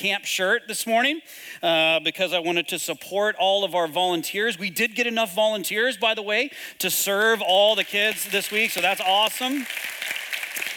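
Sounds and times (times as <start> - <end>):
speech: 0.0 - 10.2
audience clapping: 7.2 - 10.7.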